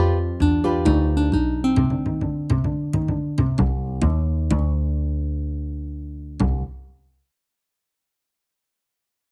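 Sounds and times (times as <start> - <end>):
MIDI blues music: 0.0 - 5.0.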